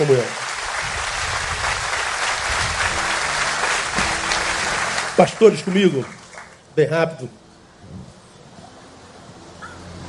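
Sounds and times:
speech: 0.0s - 0.4s, 5.2s - 6.2s, 6.8s - 8.0s
audience applause: 0.0s - 6.7s.

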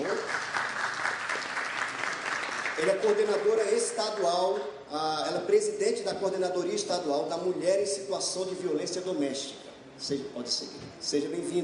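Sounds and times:
audience applause: 0.0s - 3.6s
speech: 2.8s - 11.6s.

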